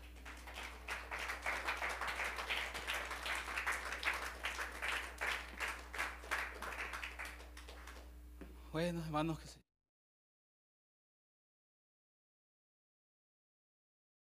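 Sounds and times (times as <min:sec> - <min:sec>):
audience clapping: 0:00.0 - 0:08.1
speech: 0:08.8 - 0:09.6.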